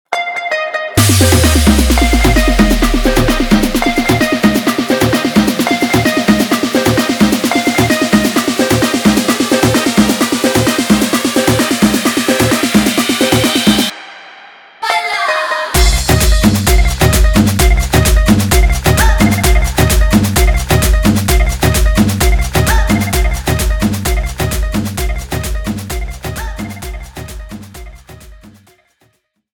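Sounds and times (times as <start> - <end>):
intro outro music: 0.8 - 28.7.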